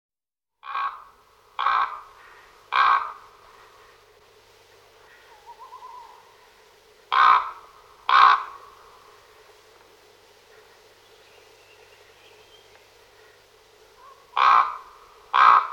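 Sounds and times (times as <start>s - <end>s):
common raven croaking: 0.6s - 4.0s, 5.0s - 9.4s, 13.1s - 15.7s.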